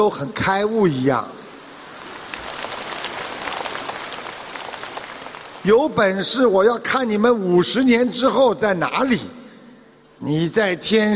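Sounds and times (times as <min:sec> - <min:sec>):
speech: 0:00.0 - 0:01.4, 0:05.6 - 0:09.4, 0:10.2 - 0:11.1
warm audience applause: 0:01.9 - 0:05.9.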